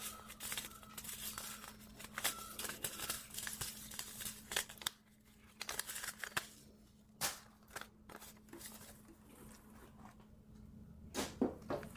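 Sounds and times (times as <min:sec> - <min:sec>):
paper seed packets shuffled and sorted: 0:00.0 - 0:06.7, 0:07.3 - 0:09.6.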